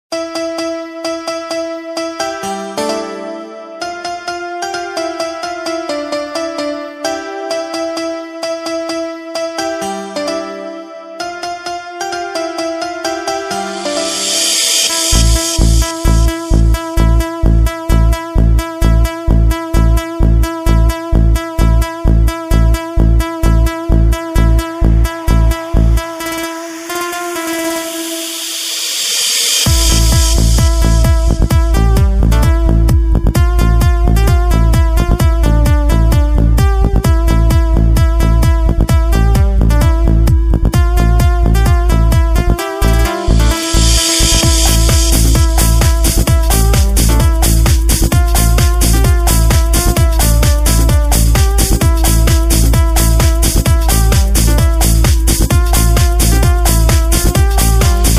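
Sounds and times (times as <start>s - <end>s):
club remix of a Christmas song: 0.1s - 58.1s.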